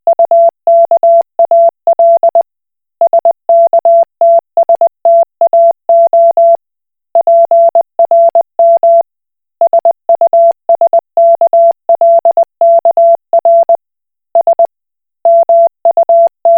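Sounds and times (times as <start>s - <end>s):
Koch Morse code beeps: 0.1s - 2.4s, 3.0s - 6.6s, 7.2s - 9.0s, 9.6s - 13.8s, 15.3s - 16.5s.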